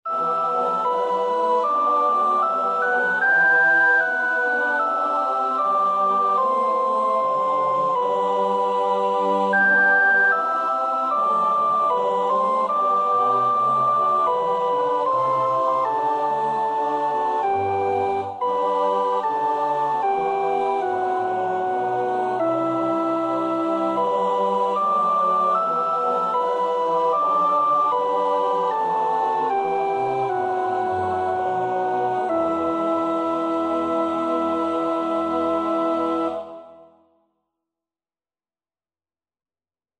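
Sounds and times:
soprano practising a choir part: 0.1s - 37.0s.

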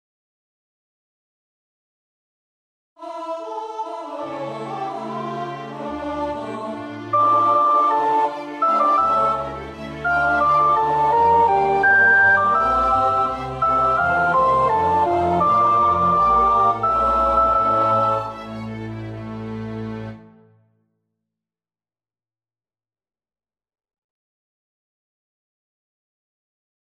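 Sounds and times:
soprano choir part singing: 3.0s - 19.8s.

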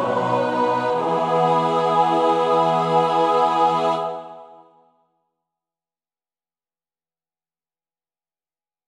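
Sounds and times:
choir singing a chorale: 0.0s - 4.9s.

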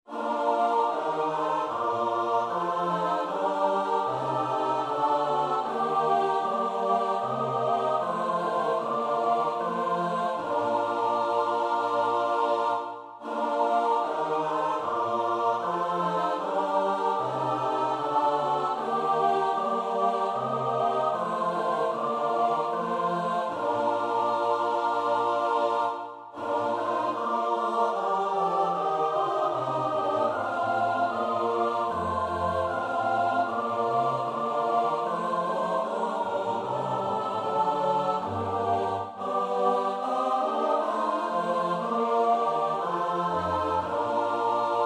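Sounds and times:
soprano alto tenor bass voices: 0.1s - 44.8s.

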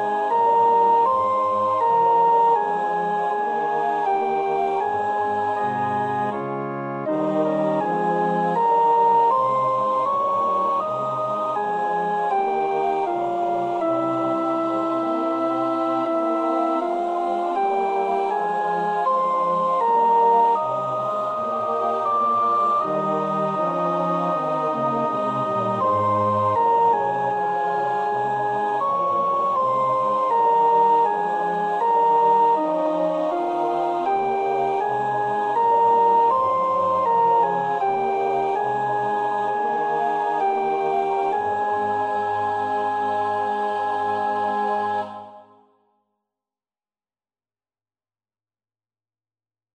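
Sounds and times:
soprano practising a choir part: 0.0s - 45.5s.

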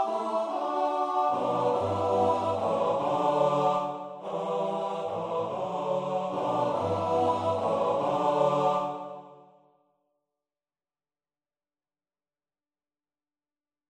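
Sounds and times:
male choir singing TTBB: 0.0s - 9.2s.

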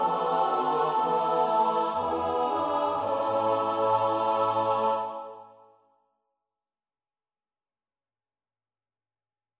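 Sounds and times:
soprano alto tenor bass voices: 0.0s - 5.5s.

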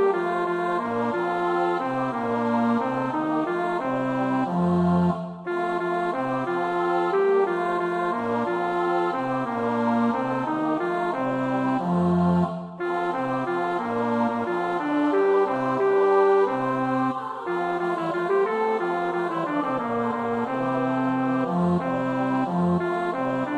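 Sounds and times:
bass choir part practice: 0.2s - 23.5s.

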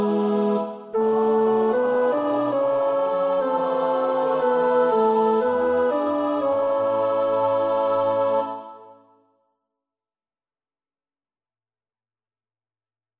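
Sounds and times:
tenor singing choir part: 0.0s - 9.2s.

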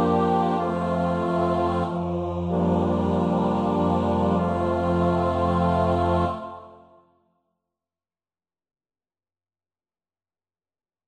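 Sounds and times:
SATB choir part practice: 0.0s - 7.1s.

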